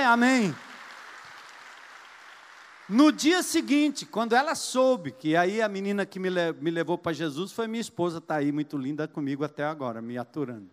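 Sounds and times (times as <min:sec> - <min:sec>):
speech: 0:00.0 - 0:00.7, 0:02.9 - 0:10.7
audience applause: 0:00.0 - 0:03.2.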